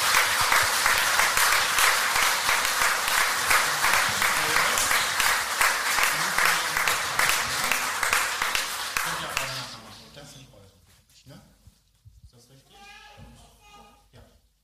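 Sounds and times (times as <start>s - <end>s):
audience applause: 0.0s - 10.0s.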